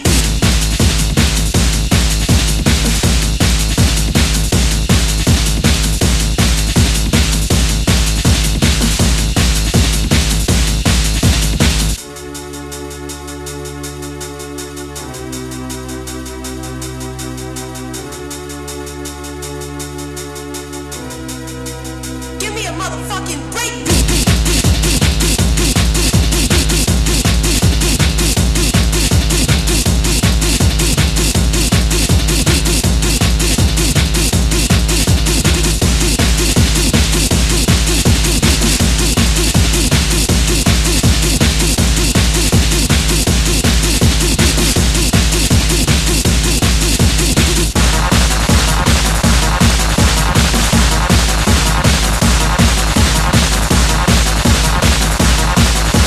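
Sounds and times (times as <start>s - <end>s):
breakbeat hardcore gabber music: 0.0s - 56.0s.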